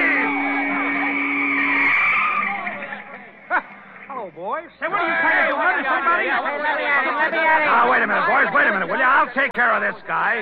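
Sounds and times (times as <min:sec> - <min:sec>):
car skidding on a field: 0:00.0 - 0:03.4
speech: 0:04.4 - 0:10.4.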